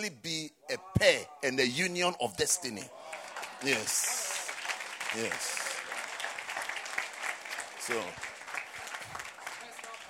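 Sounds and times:
speech: 0.0 - 4.2, 5.1 - 5.6, 7.9 - 8.3
sisters clapping: 2.6 - 10.0.

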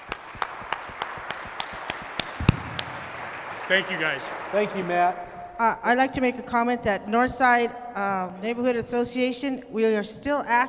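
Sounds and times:
audience applause: 0.0 - 5.4
speech: 3.7 - 10.6.

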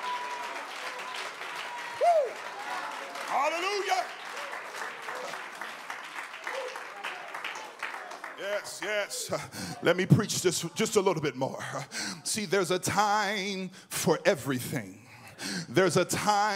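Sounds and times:
audience clapping: 0.0 - 9.5
speech: 3.5 - 4.2, 8.5 - 16.5.

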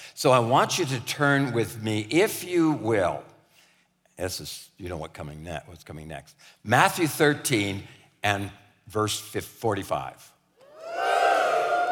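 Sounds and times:
speech: 0.2 - 3.3, 4.2 - 10.3
church congregation cheering: 10.6 - 11.9.

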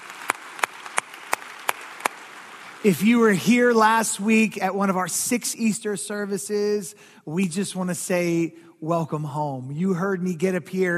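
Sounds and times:
church congregation clapping at a Sunday morning service: 0.0 - 5.0
speech: 2.8 - 10.9.

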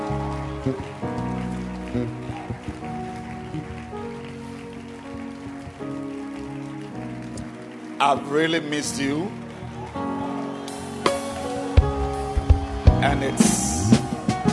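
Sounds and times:
crowd clapping: 0.0 - 14.5
speech: 0.6 - 1.0, 2.0 - 2.2, 8.0 - 9.4, 13.1 - 14.0.

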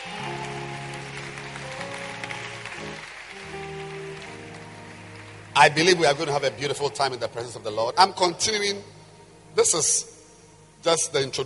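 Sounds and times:
audience clapping hands: 0.0 - 7.2
speech: 5.6 - 9.0, 9.6 - 10.2, 10.8 - 11.4.

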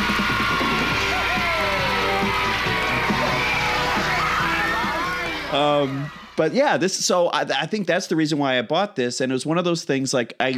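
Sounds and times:
crowd cheering: 0.0 - 7.7
speech: 5.6 - 10.5.

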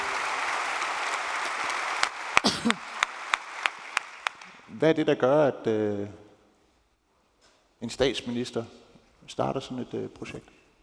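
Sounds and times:
audience applause: 0.0 - 4.7
sharp, evenly spaced rhythmic claps: 0.0 - 4.8
speech: 2.6 - 2.9, 4.8 - 6.2, 7.8 - 10.6.

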